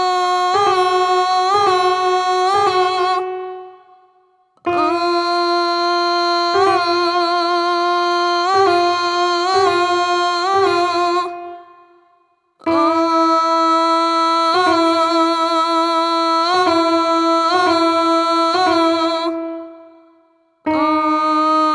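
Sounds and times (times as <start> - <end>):
woman singing notes rising a whole step: 0.0 - 21.7.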